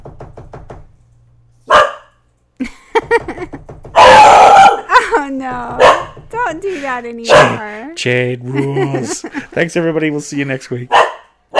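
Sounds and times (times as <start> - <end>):
knocking: 0.0 - 1.0, 2.7 - 7.0
dog barking: 1.7 - 2.1, 4.0 - 4.9, 5.8 - 6.2, 7.3 - 7.6, 10.9 - 11.5
laughter: 2.6 - 3.7, 4.8 - 5.7, 6.4 - 9.9
speech: 6.5 - 11.1.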